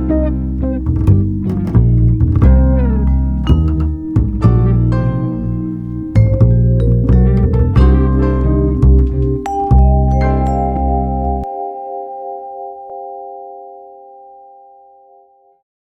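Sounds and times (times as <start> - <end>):
jazz groove: 0.0 - 11.5.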